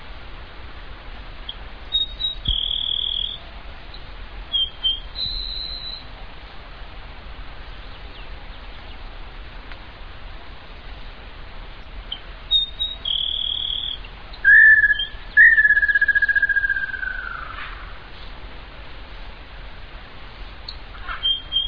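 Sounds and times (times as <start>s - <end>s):
Grassland Sparrow Ammodramus humeralis song: 1.5s - 6.1s, 7.5s - 9.2s, 10.7s - 18.3s, 20.4s - 21.6s.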